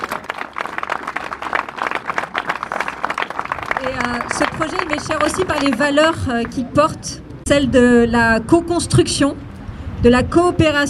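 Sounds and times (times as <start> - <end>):
crowd applauding: 0.0 - 6.6
speech: 3.8 - 9.4, 10.0 - 10.8.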